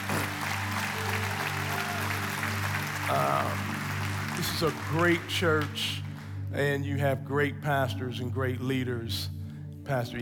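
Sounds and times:
audience applause: 0.0s - 6.4s
speech: 4.4s - 10.2s.

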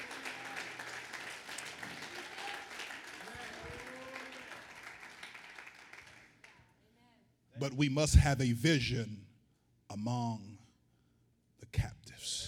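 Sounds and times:
audience clapping hands: 0.0s - 6.7s
speech: 7.6s - 9.2s, 10.0s - 10.5s.

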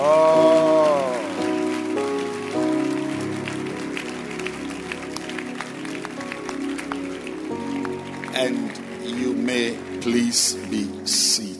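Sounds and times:
loud applause from many hands: 0.0s - 11.2s
speech: 10.3s - 11.5s.

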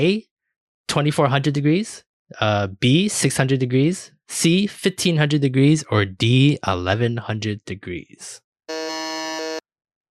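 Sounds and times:
speech: 0.0s - 0.3s, 0.9s - 8.4s
quiz buzzer: 8.7s - 9.7s.

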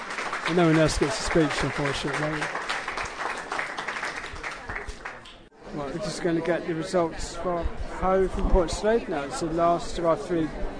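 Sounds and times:
crowd cheering and clapping at a Brighton and Hove election count: 0.0s - 5.4s
speech: 0.5s - 2.6s, 5.7s - 10.7s.

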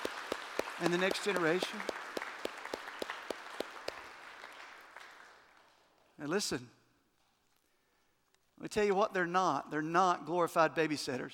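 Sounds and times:
church audience applauding: 0.0s - 6.0s
speech: 0.8s - 2.0s, 6.2s - 6.8s, 8.6s - 11.3s.

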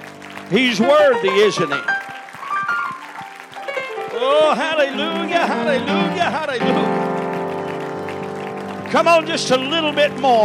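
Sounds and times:
audience hand clapping together: 0.0s - 10.4s
steady rhythmic thumps: 0.0s - 10.4s
speech: 0.5s - 2.0s, 4.2s - 7.1s, 8.9s - 10.4s.

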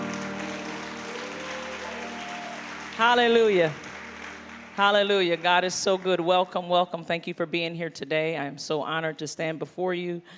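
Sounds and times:
church congregation applauding: 0.0s - 6.6s
speech: 3.0s - 3.9s, 4.8s - 10.3s.

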